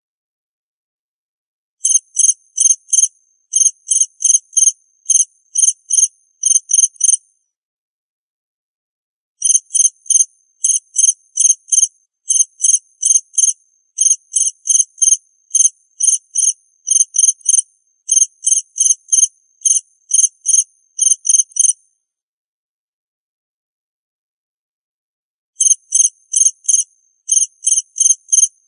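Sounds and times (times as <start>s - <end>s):
cricket chirping: 1.8s - 7.3s, 9.4s - 21.8s, 25.6s - 28.6s.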